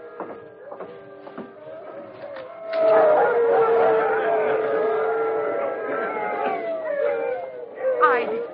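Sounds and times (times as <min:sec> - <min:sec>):
pack of sled dogs howling together: 0:00.0 - 0:08.5.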